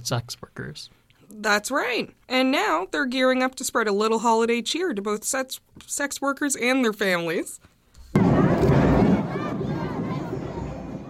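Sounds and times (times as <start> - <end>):
speech: 0.0 - 7.7
children shrieking and cheering at a Santa Claus Parade: 8.2 - 11.0
crowd babble at a Santa Claus Parade: 8.2 - 11.0.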